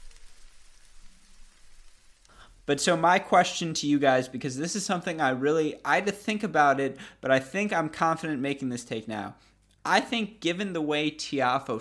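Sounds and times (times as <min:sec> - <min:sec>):
crackling sizzle sound effect: 0:00.0 - 0:04.4
speech: 0:02.7 - 0:11.7.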